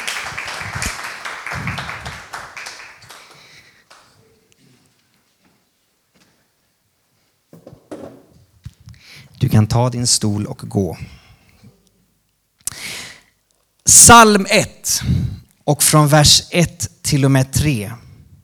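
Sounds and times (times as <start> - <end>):
audience applause: 0.0 - 4.2
speech: 9.6 - 11.2, 14.1 - 18.0.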